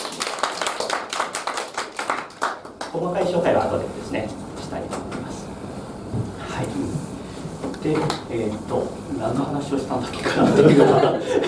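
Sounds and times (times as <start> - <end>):
small group clapping: 0.0 - 3.4
speech: 2.9 - 5.4, 7.8 - 11.4
laughter: 10.2 - 11.4.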